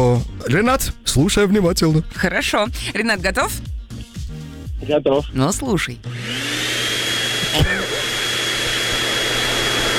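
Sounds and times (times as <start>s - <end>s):
speech: 0.1s - 3.8s, 4.8s - 6.4s, 7.6s - 7.8s
poplar-fluff vacuum machine roaring: 6.1s - 9.9s.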